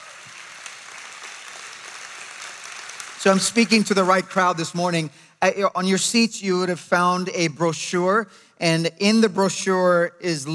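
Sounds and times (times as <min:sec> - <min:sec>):
audience applause: 0:00.0 - 0:04.2
speech: 0:03.2 - 0:10.5.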